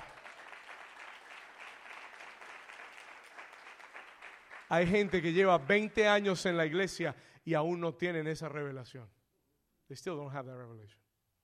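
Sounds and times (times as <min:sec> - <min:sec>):
applause: 0:00.0 - 0:06.6
speech: 0:04.7 - 0:09.2, 0:09.9 - 0:11.0.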